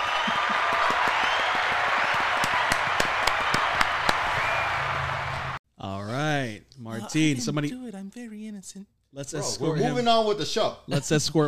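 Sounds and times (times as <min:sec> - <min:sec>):
audience applause: 0:00.0 - 0:05.6
speech: 0:07.1 - 0:11.4.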